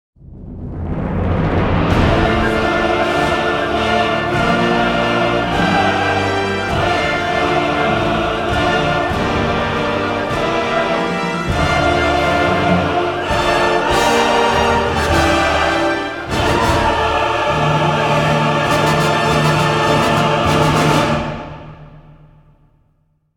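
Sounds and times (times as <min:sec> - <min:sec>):
choir singing: 0:01.7 - 0:22.4.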